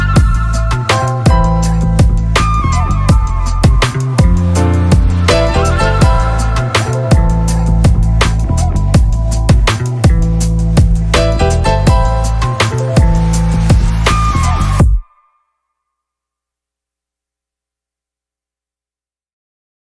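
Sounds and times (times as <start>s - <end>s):
instrumental music: 0.0s - 15.6s.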